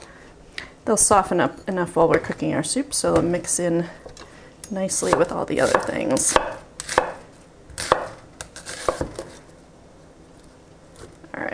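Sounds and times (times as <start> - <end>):
speech: 0.9 - 6.5
knife chopping an onion into half-inch squares on a cutting board: 5.0 - 7.2, 7.8 - 9.4.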